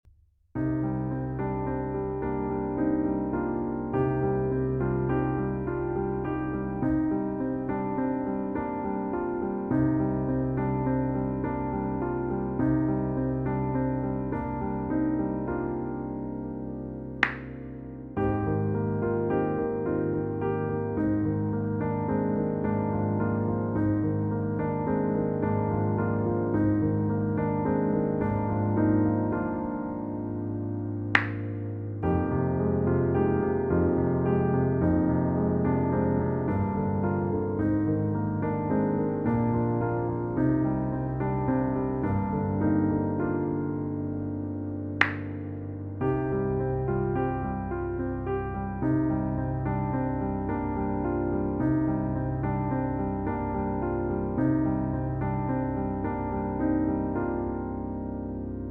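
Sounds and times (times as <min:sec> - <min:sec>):
piano music: 0:00.6 - 0:58.6.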